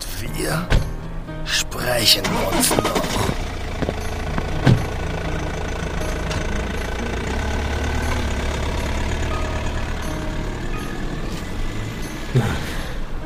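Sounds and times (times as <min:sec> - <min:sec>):
speech: 0:00.3 - 0:00.8, 0:01.5 - 0:03.3
car driving away: 0:00.8 - 0:13.2.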